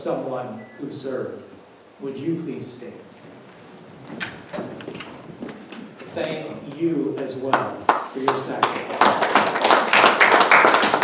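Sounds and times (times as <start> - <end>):
speech: 0.0 - 3.4, 4.1 - 4.7, 6.2 - 9.3
audience clapping for standing family members of people who served: 6.5 - 11.0.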